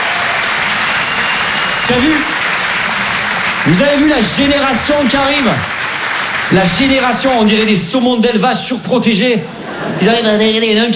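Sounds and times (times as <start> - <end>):
audience applause: 0.0 - 8.0
speech: 1.9 - 2.4, 3.6 - 5.8, 6.5 - 10.9.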